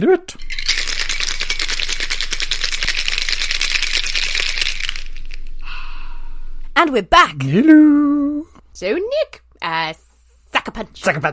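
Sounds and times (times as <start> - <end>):
speech: 0.0 - 0.6, 6.8 - 10.0, 10.6 - 11.3
cocktail being shaken in a shaker: 0.4 - 5.6.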